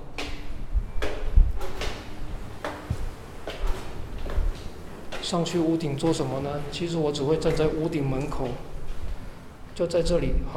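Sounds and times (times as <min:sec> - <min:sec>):
strong typhoon wind: 0:00.5 - 0:05.1
speech: 0:05.2 - 0:08.7, 0:09.8 - 0:10.5.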